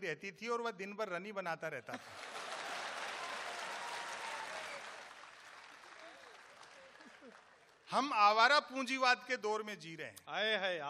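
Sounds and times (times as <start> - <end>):
speech: 0.0 - 2.4, 7.9 - 10.8
audience applause: 2.0 - 7.9.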